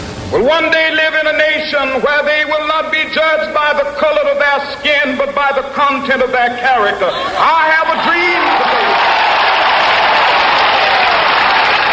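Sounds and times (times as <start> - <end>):
speech: 0.3 - 9.0
audience applause after speech: 7.4 - 11.9.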